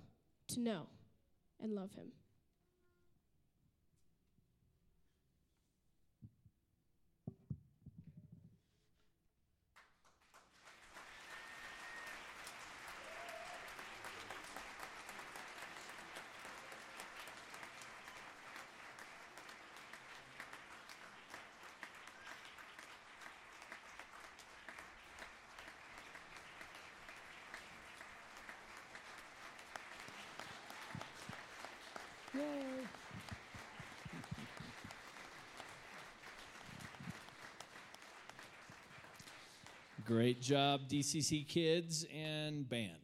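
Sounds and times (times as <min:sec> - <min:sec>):
speech: 0:00.6 - 0:01.0, 0:01.6 - 0:02.2, 0:40.1 - 0:43.0
audience applause after children's performance: 0:10.0 - 0:40.3.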